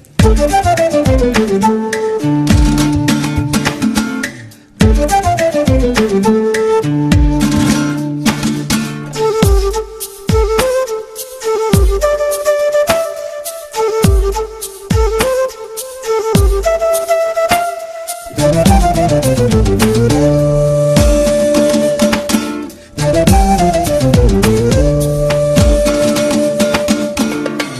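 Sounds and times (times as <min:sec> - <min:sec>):
Telugu background music: 0:00.0 - 0:27.7.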